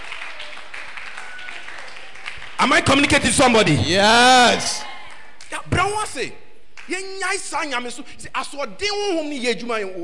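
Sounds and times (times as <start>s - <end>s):
audience clapping: 0.0s - 3.8s, 4.4s - 5.6s
speech: 2.6s - 4.9s, 5.7s - 10.0s.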